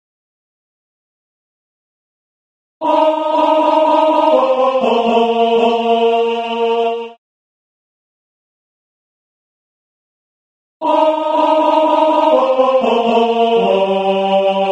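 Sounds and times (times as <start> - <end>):
alto voice singing: 2.8 - 7.2, 10.8 - 14.7.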